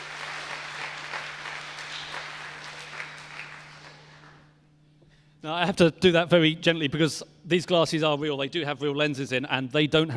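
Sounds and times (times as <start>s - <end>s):
audience cheering: 0.0s - 4.4s
speech: 5.4s - 10.1s.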